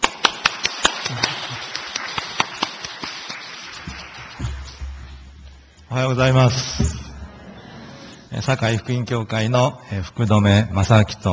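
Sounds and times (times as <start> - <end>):
few people clapping in welcome for a guest speaker in a church: 0.0 - 5.8
speech: 6.0 - 7.0, 8.4 - 11.3.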